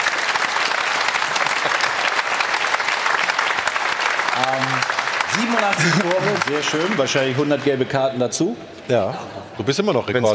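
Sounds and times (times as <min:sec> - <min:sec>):
audience applause: 0:00.0 - 0:08.2
speech: 0:04.4 - 0:10.3.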